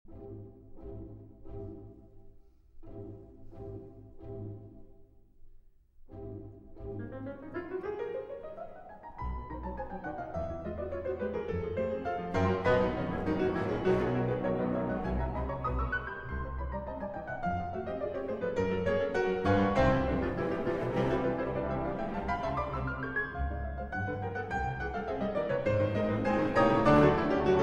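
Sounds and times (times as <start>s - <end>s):
piano concerto in D-flat major: 6.3s - 27.6s.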